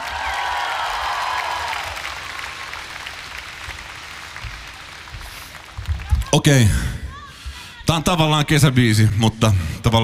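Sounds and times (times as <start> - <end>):
crowd applauding: 0.0 - 7.0
speech: 6.4 - 6.9, 7.9 - 10.0.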